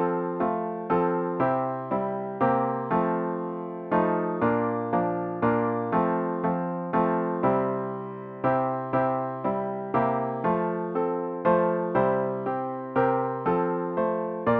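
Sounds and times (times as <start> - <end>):
piano: 0.0 - 14.5.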